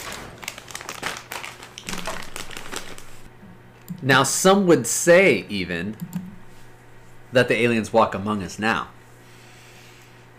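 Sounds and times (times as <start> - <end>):
person munching popcorn: 0.0 - 3.3
speech: 4.0 - 6.2, 7.3 - 9.0.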